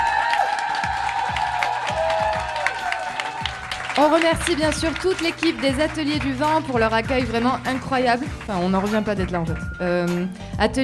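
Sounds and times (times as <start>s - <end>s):
cheers and whoops: 0.0s - 4.1s
live audience applauding: 0.0s - 9.8s
speech: 4.0s - 10.8s.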